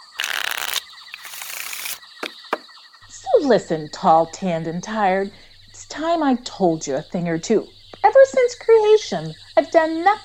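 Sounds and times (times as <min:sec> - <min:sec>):
deck of cards made from fig leaves shuffled in a cartoon: 0:00.0 - 0:02.0
speech: 0:03.4 - 0:10.2.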